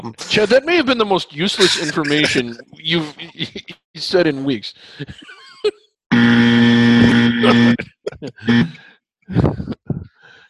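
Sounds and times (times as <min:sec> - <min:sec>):
speech: 0:00.0 - 0:09.8
loud harsh buzzer: 0:01.6 - 0:02.5, 0:06.1 - 0:07.8.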